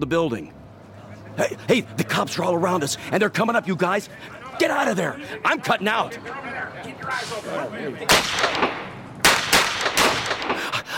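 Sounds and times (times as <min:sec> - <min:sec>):
speech: 0:00.0 - 0:00.6, 0:01.4 - 0:08.9
gunfire during police chase: 0:08.1 - 0:10.8.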